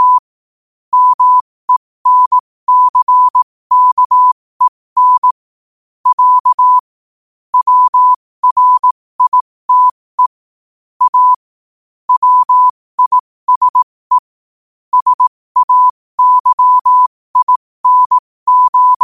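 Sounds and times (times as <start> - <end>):
morse code at 5 wpm: 0.0 - 0.2, 0.9 - 5.4, 6.0 - 6.8, 7.6 - 10.4, 11.0 - 11.4, 12.1 - 14.2, 14.9 - 19.0.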